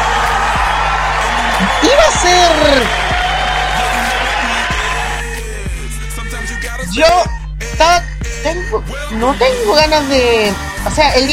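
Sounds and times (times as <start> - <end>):
applause and cheering: 0.0 - 5.6
speech: 1.8 - 3.0, 6.9 - 11.3.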